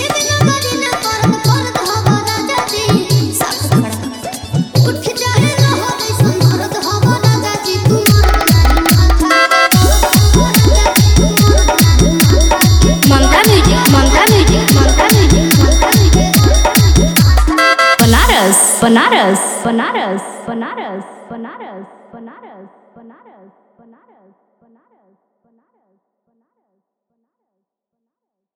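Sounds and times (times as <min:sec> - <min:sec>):
Bhojpuri DJ remix song: 0:00.0 - 0:21.3.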